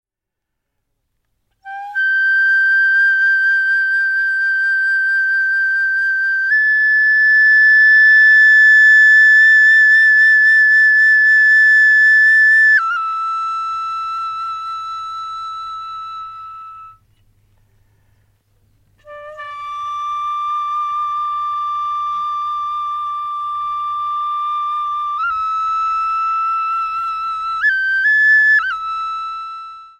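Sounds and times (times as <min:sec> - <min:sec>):
bansuri bamboo flute: 0:01.3 - 0:29.9.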